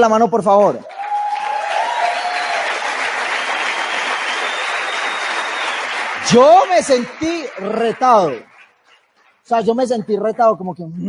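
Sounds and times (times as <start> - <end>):
speech: 0.0 - 0.9, 6.3 - 8.5, 9.5 - 11.0
audience applause: 0.9 - 9.2.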